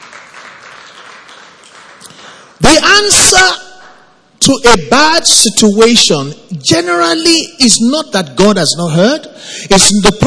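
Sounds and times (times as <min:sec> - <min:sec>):
audience clapping: 0:00.0 - 0:02.6
speech: 0:02.7 - 0:03.6, 0:04.4 - 0:10.2.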